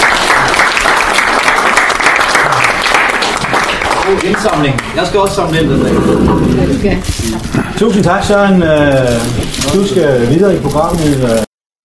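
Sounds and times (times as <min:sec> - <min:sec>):
audience applause: 0:00.0 - 0:05.4
speech: 0:04.1 - 0:11.5.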